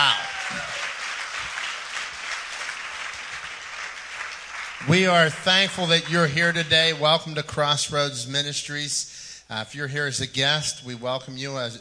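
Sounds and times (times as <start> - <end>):
church congregation at Crossroads Ministries applauding after a children's choir performs: 0.0 - 7.4
speech: 4.8 - 11.7.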